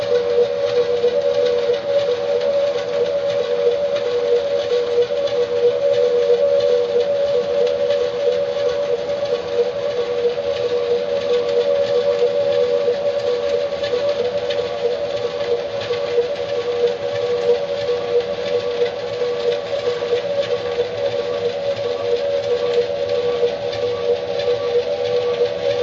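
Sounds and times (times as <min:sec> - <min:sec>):
ship siren: 0:00.0 - 0:25.8.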